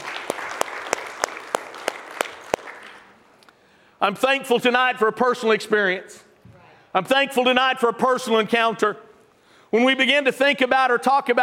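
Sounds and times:
audience applause, hand clapping: 0.0 - 3.2
speech: 4.0 - 6.3, 6.9 - 9.0, 9.7 - 11.4.

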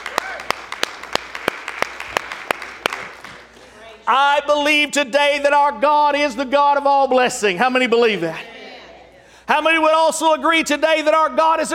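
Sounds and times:
audience hand clapping: 0.0 - 3.9
speech: 4.1 - 8.5, 9.5 - 11.7.

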